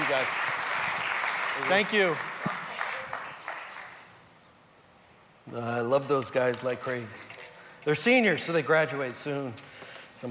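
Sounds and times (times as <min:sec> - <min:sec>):
crowd applause: 0:00.0 - 0:04.1
speech: 0:00.1 - 0:00.6, 0:01.6 - 0:02.6, 0:05.5 - 0:10.2.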